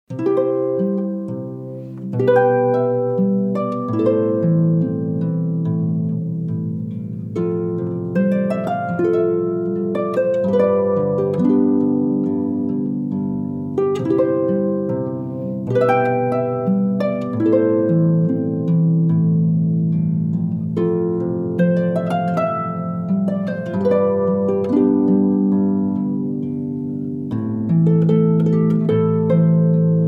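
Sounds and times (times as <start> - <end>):
harpists playing: 0.1 - 30.0.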